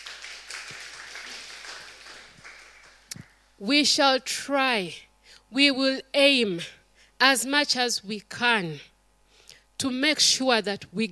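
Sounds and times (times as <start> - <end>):
audience clapping: 0.0 - 3.5
speech: 3.6 - 8.9, 9.8 - 11.1.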